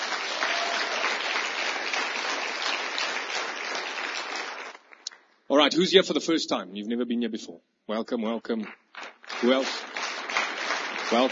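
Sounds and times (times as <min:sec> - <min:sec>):
congregation applauding at an evening church meeting: 0:00.0 - 0:05.2, 0:08.6 - 0:11.3
speech: 0:05.5 - 0:08.8, 0:09.4 - 0:09.9, 0:11.1 - 0:11.3.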